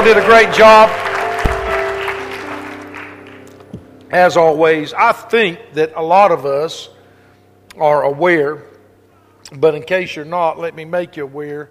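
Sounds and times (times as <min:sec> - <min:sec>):
speech: 0:00.0 - 0:01.0, 0:04.1 - 0:07.0, 0:07.7 - 0:08.7, 0:09.5 - 0:11.6
audience hand clapping: 0:00.0 - 0:03.8.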